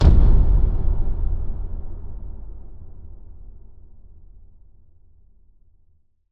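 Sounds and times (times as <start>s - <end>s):
impact boom thud: 0.0s - 3.8s.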